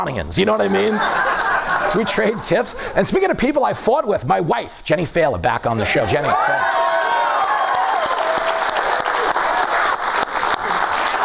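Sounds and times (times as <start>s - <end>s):
speech: 0.0s - 6.9s
laughter: 0.5s - 3.0s
crowd applauding: 6.3s - 11.2s.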